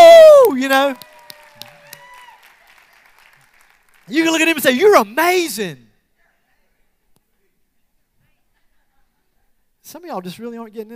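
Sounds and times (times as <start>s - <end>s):
audience clapping: 0.4s - 5.0s
speech: 0.7s - 1.1s, 4.1s - 5.8s, 9.9s - 10.9s.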